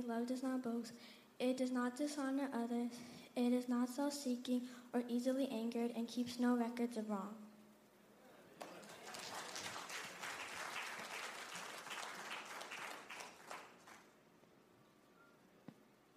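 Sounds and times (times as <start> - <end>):
speech: 0.0 - 7.4
audience clapping: 8.6 - 14.2.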